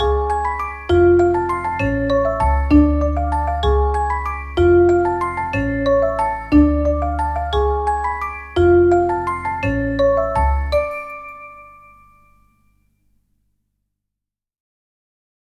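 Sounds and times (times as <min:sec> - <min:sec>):
mischievous orchestral comic drama underscore: 0:00.0 - 0:12.0.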